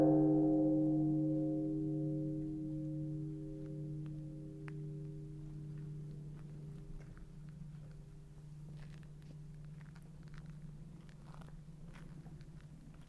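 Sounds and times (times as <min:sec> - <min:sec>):
Sannohe temple bell ringing: 0:00.0 - 0:07.0.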